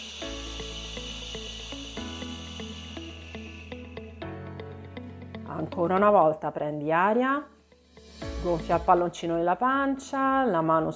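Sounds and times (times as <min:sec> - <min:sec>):
exhaling air with a shushing hiss: 0:00.0 - 0:05.0
speech: 0:05.6 - 0:07.6, 0:08.4 - 0:10.9.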